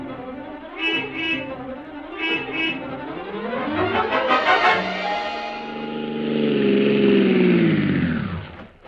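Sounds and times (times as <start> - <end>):
taxi engine revving and driving off: 2.8 - 8.8.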